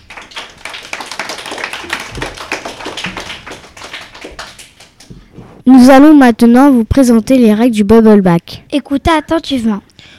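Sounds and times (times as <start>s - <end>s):
crowd applauding: 0.0s - 5.1s
speech: 5.6s - 9.9s.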